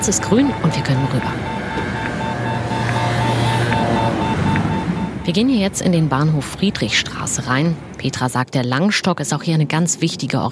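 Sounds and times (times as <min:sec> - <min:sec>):
speech: 0:00.0 - 0:01.6, 0:05.3 - 0:10.5
acoustic pedestrian crossing signal clicking: 0:00.0 - 0:07.1
low engine drone: 0:00.0 - 0:08.2
faint tonal hum: 0:00.0 - 0:10.5
street traffic rumble: 0:00.0 - 0:10.5.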